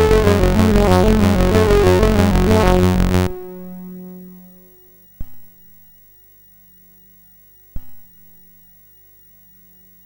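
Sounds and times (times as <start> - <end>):
demo music: 0.0 - 5.0.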